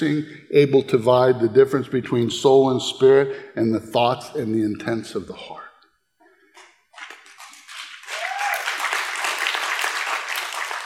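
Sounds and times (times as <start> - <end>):
speech: 0.0 - 5.6
crowd applauding: 7.0 - 10.8.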